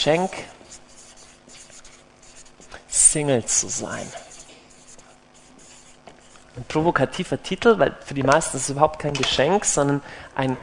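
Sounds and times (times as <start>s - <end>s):
speech: 0.0s - 0.6s, 3.1s - 4.2s, 6.6s - 10.6s
pen scratching while writing a title: 0.1s - 6.5s.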